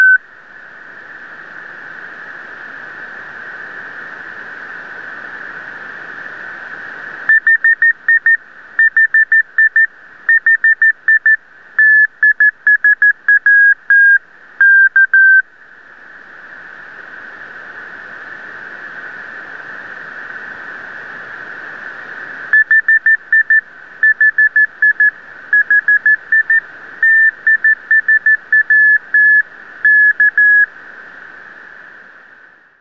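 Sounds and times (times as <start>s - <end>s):
TIsat-1 satellite CW beacon tones: 0.0s - 0.2s, 7.3s - 15.4s, 22.6s - 30.7s.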